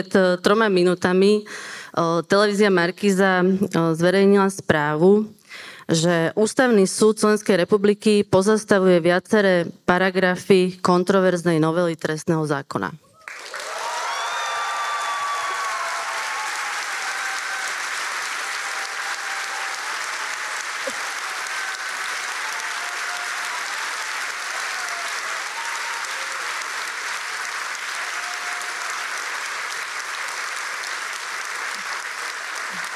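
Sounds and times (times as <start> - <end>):
speech: 0.0 - 13.0
audience applauding a court decision: 13.2 - 32.9
laughter: 18.6 - 22.2.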